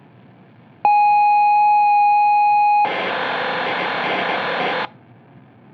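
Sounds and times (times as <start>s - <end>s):
emergency alert: 0.8s - 4.9s.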